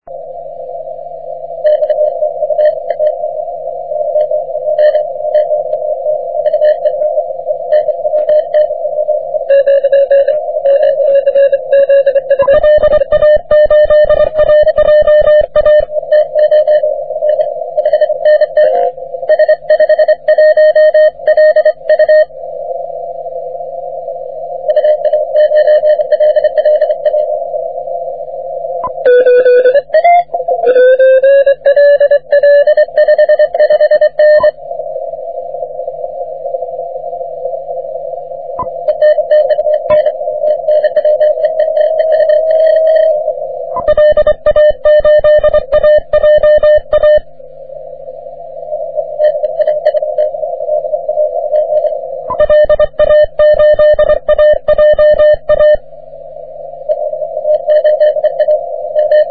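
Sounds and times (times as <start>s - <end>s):
CW morse code on the 30 metre band: 1.6s - 3.2s, 4.0s - 22.3s, 24.6s - 27.4s, 28.8s - 34.6s, 38.6s - 47.3s, 49.0s - 55.8s, 56.9s - 59.2s.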